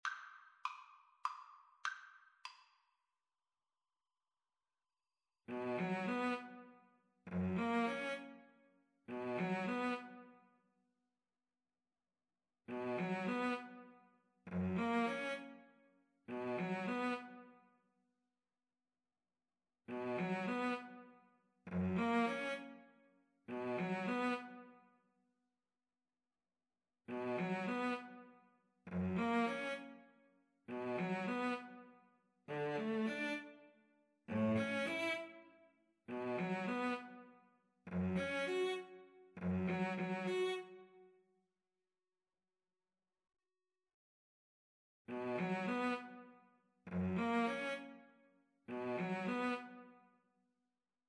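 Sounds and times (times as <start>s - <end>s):
violin and cello duet: 5.5s - 6.6s, 7.3s - 8.4s, 9.1s - 10.2s, 12.7s - 13.8s, 14.5s - 15.6s, 16.3s - 17.4s, 20.0s - 21.0s, 21.7s - 22.7s, 23.5s - 24.6s, 27.1s - 28.2s, 28.9s - 30.0s, 30.7s - 31.8s, 32.5s - 33.6s, 34.3s - 35.4s, 36.1s - 37.2s, 37.9s - 40.8s, 45.1s - 46.2s, 47.0s - 47.9s, 48.7s - 49.8s.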